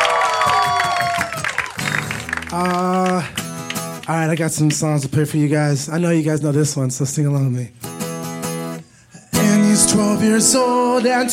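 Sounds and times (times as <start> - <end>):
crowd whooping and shouting: 0.0 - 2.2
audience clapping: 0.0 - 5.2, 10.5 - 11.3
speech: 2.5 - 3.3, 4.1 - 7.9, 10.0 - 11.3.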